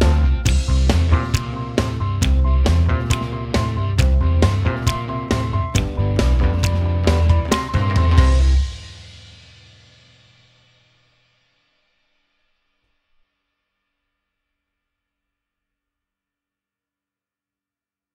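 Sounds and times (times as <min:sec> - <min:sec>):
instrumental music: 0:00.0 - 0:09.6.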